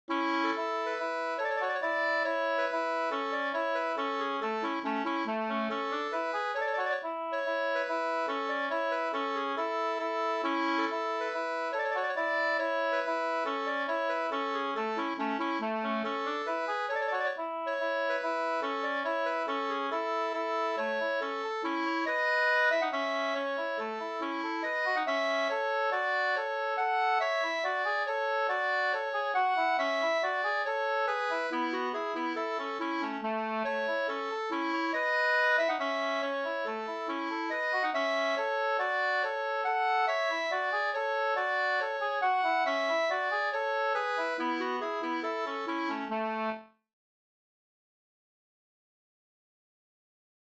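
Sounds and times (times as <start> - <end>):
two-part polska folk dance tune: 0.1 - 46.8.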